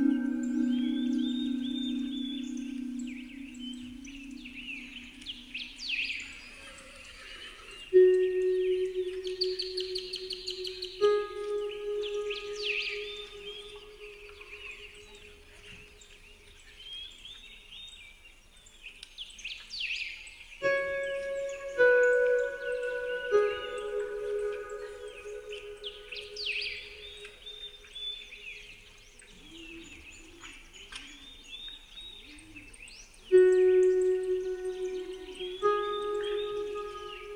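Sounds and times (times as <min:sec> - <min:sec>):
relaxing spa music on Celtic harp: 0:00.0 - 0:06.1, 0:08.0 - 0:15.3, 0:20.6 - 0:27.6, 0:33.3 - 0:37.3
birds: 0:00.0 - 0:37.3.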